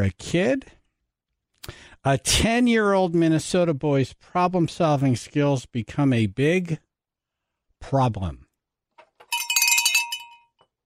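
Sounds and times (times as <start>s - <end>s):
speech: 0.0s - 0.8s, 1.6s - 6.8s, 7.8s - 8.4s
hand bell ringing: 9.2s - 10.6s.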